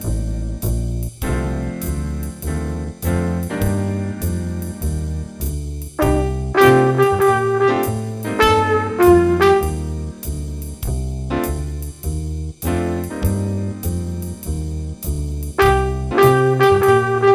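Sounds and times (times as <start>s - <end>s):
jazz improvisation in C minor with jazz rhythms: 0.0s - 17.3s
trumpet: 6.0s - 10.2s, 15.6s - 17.3s.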